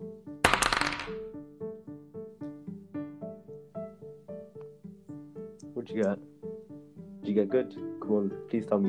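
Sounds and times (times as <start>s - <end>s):
dice rolled in a tabletop role-playing game: 0.4s - 1.3s
soft repeating plucked melody: 5.4s - 8.8s
speech: 5.8s - 6.3s, 7.3s - 8.8s.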